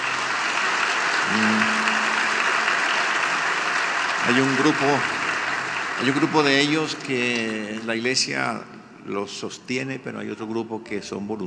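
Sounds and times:
church audience applauding: 0.0 - 8.5
speech: 4.3 - 5.2, 6.0 - 11.4.

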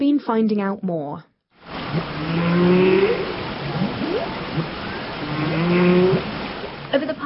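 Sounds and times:
speech: 0.1 - 1.3, 1.9 - 3.4, 5.4 - 6.3, 6.9 - 7.2
humpback whale song: 1.7 - 7.0.

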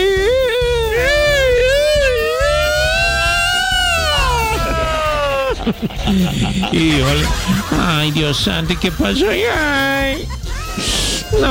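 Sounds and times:
voice imitating a crying alarm siren: 0.0 - 5.3
laughter: 4.0 - 11.5
speech: 5.7 - 11.5.

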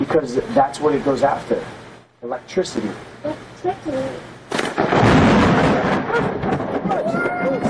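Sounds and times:
speech: 0.0 - 5.2
thunder clap during thunderstorm: 4.5 - 7.6.

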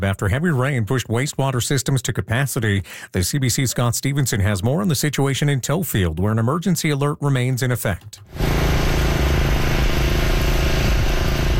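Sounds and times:
speech: 0.0 - 9.1
water pumps running at full power: 8.3 - 11.5.

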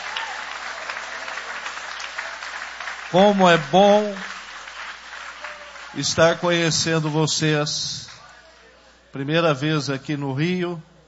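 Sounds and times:
audience clapping: 0.0 - 7.4
speech: 3.1 - 4.3, 6.0 - 8.1, 9.2 - 10.9.

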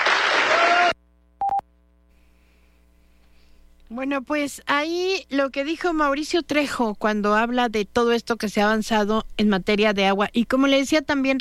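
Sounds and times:
applause: 0.0 - 1.0
electronic beep tone: 1.4 - 1.6
speech: 3.9 - 11.3.

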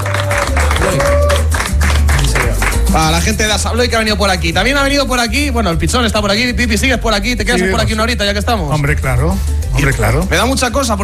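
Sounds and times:
audience applause for guests at a live event: 0.0 - 3.0
speech: 2.9 - 11.0.

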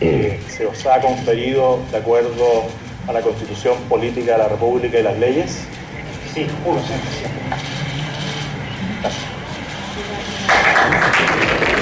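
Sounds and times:
speech: 0.0 - 5.8, 6.4 - 7.7, 9.0 - 9.3
applause for a newly sworn-in minister: 10.4 - 11.8.

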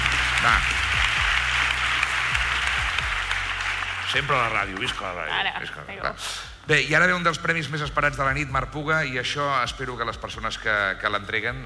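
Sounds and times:
audience clapping at an awards night: 0.0 - 5.7
speech: 0.4 - 1.0, 4.1 - 11.6.

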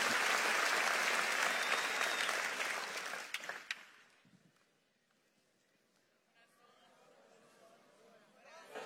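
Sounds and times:
church audience applauding loudly: 0.0 - 4.1.

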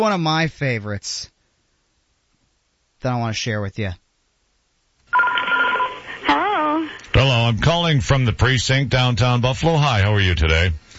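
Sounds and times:
speech: 0.0 - 1.4, 3.0 - 4.0, 7.1 - 10.8
telephone ringing at the start of a prank call: 5.1 - 6.3.

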